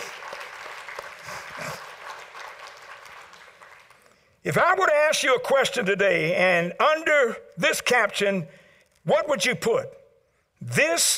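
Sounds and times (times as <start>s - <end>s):
audience applause: 0.0s - 4.1s
speech: 4.4s - 10.0s, 10.6s - 11.1s.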